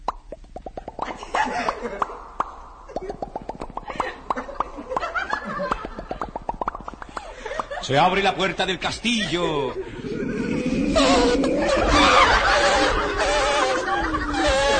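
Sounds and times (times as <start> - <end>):
water drops falling from ceiling: 0.0 - 7.9
laughter: 1.1 - 2.2, 3.8 - 6.3, 7.1 - 14.7
speech: 1.5 - 2.1, 7.9 - 9.9.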